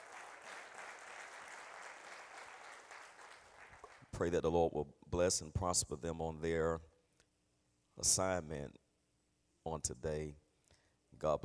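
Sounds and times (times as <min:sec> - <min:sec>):
audience clapping hands: 0:00.0 - 0:04.2
speech: 0:04.2 - 0:06.9, 0:08.0 - 0:08.8, 0:09.6 - 0:10.4, 0:11.1 - 0:11.4.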